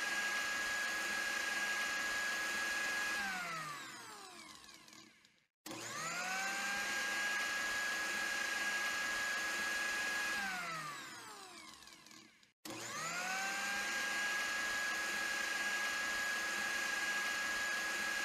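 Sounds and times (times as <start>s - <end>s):
blender running: 0.0s - 18.2s.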